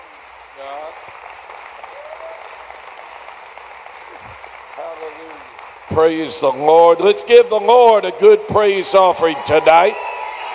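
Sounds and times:
audience applause: 0.0 - 10.5
speech: 0.6 - 1.6, 5.0 - 10.1
scattered cheers and shouted voices: 1.9 - 2.7, 8.7 - 10.5.

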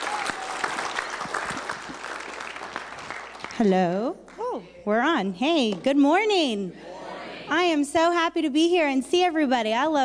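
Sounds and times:
audience clapping in welcome at a gathering: 0.0 - 4.5
speech: 3.6 - 6.9, 7.5 - 10.0.

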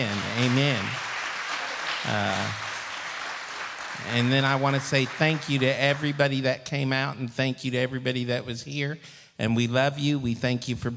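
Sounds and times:
speech: 0.0 - 1.0, 2.0 - 2.6, 4.0 - 10.9
church congregation clapping in praise: 0.0 - 6.6.

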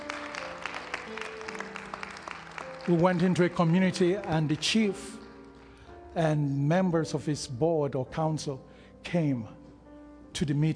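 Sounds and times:
audience clapping: 0.0 - 5.7
speech: 2.9 - 5.2, 6.2 - 9.6, 10.4 - 10.7.

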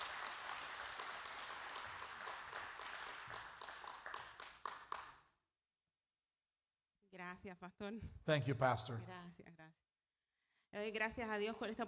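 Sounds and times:
audience hand clapping: 0.0 - 5.4
speech: 7.3 - 9.9, 10.7 - 11.8.

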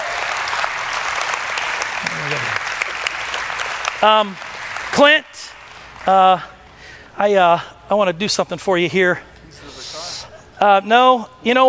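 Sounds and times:
crowd applause at a gathering: 0.0 - 5.0
speech: 4.0 - 6.5, 7.2 - 9.7, 10.6 - 11.6.

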